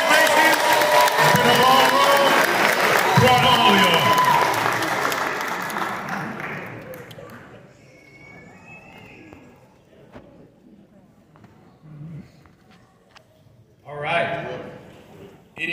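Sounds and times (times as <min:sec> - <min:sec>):
audience applause: 0:00.0 - 0:07.7.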